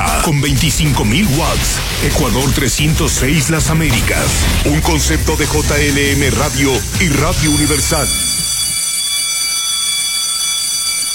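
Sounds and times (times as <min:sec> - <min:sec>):
speech: 0:00.2 - 0:08.3
bell ringing: 0:06.2 - 0:11.1.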